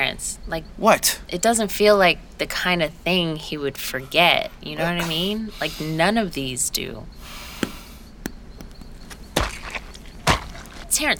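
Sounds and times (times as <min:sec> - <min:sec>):
speech: 0:00.1 - 0:07.4, 0:11.0 - 0:11.1
stomping on apples: 0:07.2 - 0:10.6.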